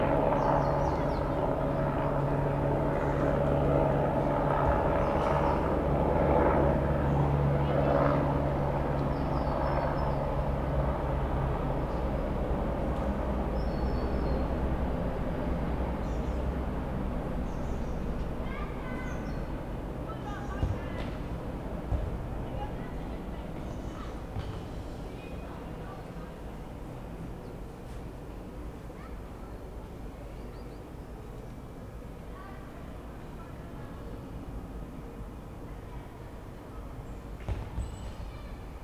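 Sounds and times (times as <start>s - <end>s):
helicopter: 0.0s - 38.8s
children playing football in the distance: 20.1s - 25.9s.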